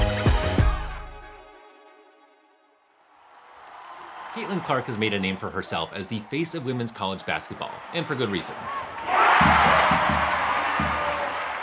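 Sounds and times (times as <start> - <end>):
crowd cheering at a basketball game: 3.0 - 11.6
speech: 4.4 - 9.1.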